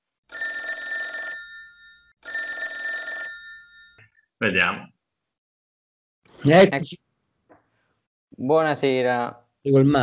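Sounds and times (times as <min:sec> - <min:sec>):
telephone ringing on an outgoing call: 0:00.3 - 0:04.0
speech: 0:04.4 - 0:04.9, 0:06.4 - 0:07.0, 0:08.4 - 0:10.0.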